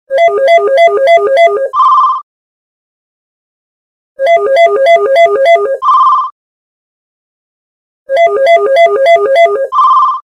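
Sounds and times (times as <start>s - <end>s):
classic phone ringtone: 0.1s - 2.2s, 4.2s - 6.3s, 8.1s - 10.2s.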